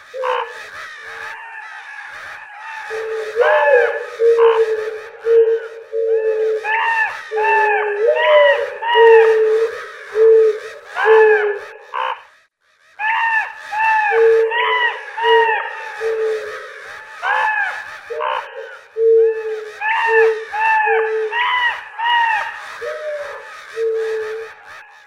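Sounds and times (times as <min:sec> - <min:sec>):
crow cawing in a fight with an owl: 0:00.0 - 0:25.0.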